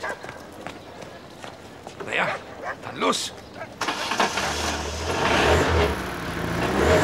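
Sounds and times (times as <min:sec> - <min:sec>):
speech: 0:02.1 - 0:03.4
VW Beetle engine starting with all gears out: 0:03.8 - 0:07.0.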